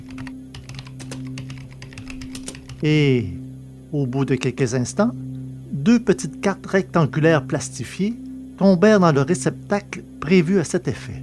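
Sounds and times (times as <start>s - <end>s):
rapid typing on the keyboard of a positronic computer: 0.0s - 2.8s
faint steady low hum: 0.0s - 11.2s
speech: 2.8s - 5.2s, 5.8s - 11.2s.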